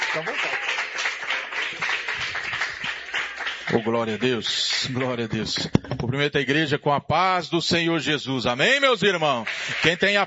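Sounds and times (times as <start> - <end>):
audience applauding: 0.0 - 5.7, 9.1 - 10.2
speech: 0.2 - 0.6, 3.8 - 10.2.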